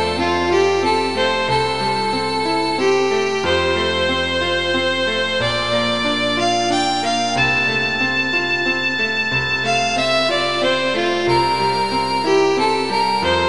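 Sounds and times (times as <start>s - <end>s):
violin and piano serenade: 0.0s - 13.4s.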